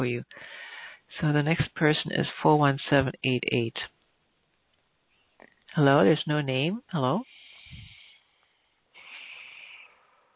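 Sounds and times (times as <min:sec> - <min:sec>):
speech: 0:00.0 - 0:04.0, 0:05.8 - 0:07.3
person breathing on a phone line: 0:00.3 - 0:01.1, 0:07.2 - 0:10.3.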